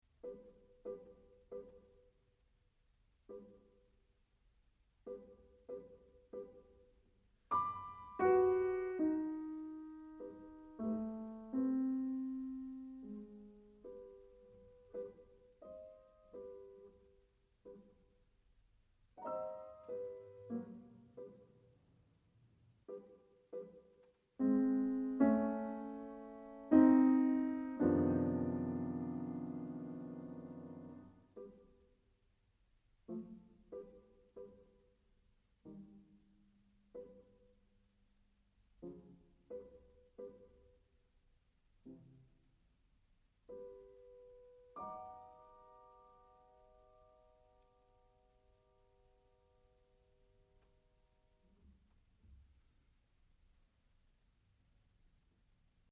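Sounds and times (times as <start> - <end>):
little piano: 0.0 - 2.3, 5.0 - 18.4, 19.1 - 32.0, 38.8 - 40.9, 43.4 - 51.8.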